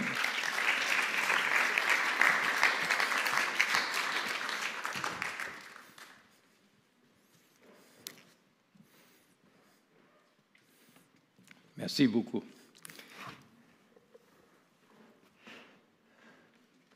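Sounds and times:
audience applause welcoming guests: 0.0 - 6.3
speech: 11.9 - 12.6.

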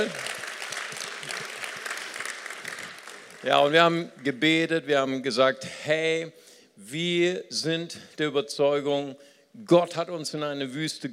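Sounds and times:
speech: 0.0 - 0.2, 3.4 - 11.1
audience applause: 0.0 - 3.8.

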